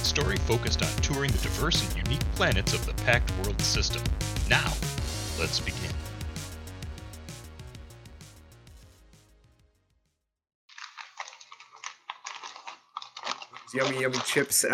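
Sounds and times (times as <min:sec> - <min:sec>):
music: 0:00.0 - 0:10.2
speech: 0:00.2 - 0:05.9, 0:13.7 - 0:14.7
Gatsby wet wipe packet torn open: 0:10.7 - 0:14.7.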